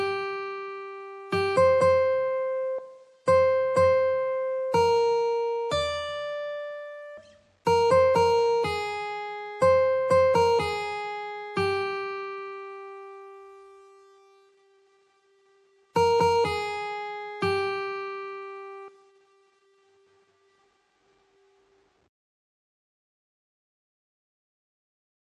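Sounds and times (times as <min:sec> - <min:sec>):
guitar: 0:00.0 - 0:19.4.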